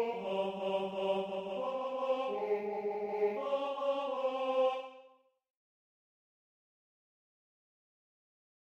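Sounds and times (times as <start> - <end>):
tenor singing: 0.0 - 5.0.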